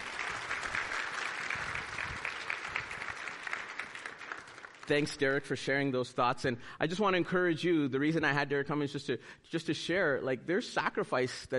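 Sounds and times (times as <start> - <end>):
crowd applause: 0.0 - 5.2
speech: 4.9 - 11.5.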